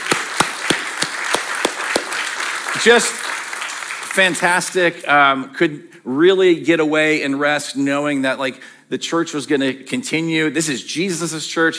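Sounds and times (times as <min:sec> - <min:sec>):
church congregation applauding its staff: 0:00.0 - 0:05.0
speech: 0:02.8 - 0:03.3, 0:04.2 - 0:11.7.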